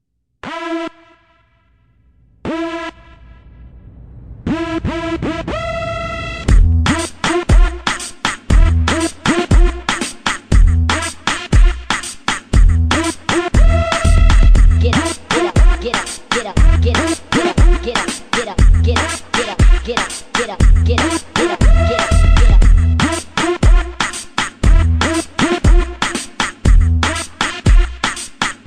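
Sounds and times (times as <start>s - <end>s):
bass: 1.7s - 7.9s, 8.5s - 9.9s, 10.5s - 11.9s, 12.5s - 16.0s, 16.6s - 18.0s, 18.6s - 20.0s, 20.6s - 24.0s, 24.6s - 26.0s, 26.6s - 27.9s.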